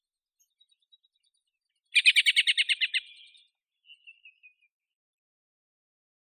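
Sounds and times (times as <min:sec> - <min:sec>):
black-throated thrush Turdus atrogularis calling: 0:02.0 - 0:03.2.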